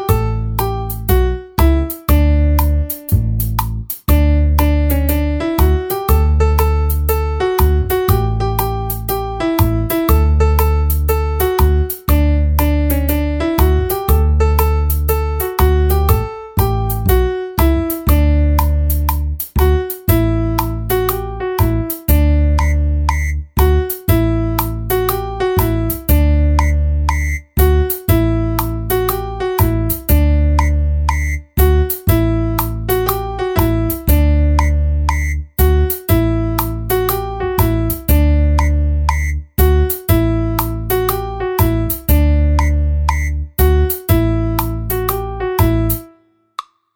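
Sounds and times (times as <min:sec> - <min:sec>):
backing music: 0:00.1 - 0:46.0.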